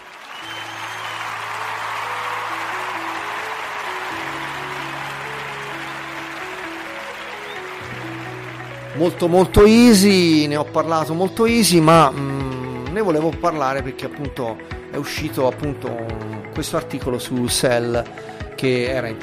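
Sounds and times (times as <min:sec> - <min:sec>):
applause sound effect: 0:00.0 - 0:10.4
speech: 0:09.0 - 0:12.4, 0:13.0 - 0:19.2.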